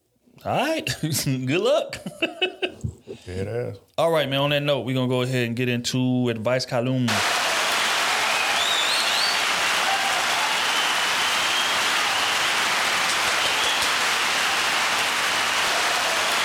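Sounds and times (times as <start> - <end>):
speech: 0.4 - 7.4
long loud applause sound effect: 7.1 - 16.4.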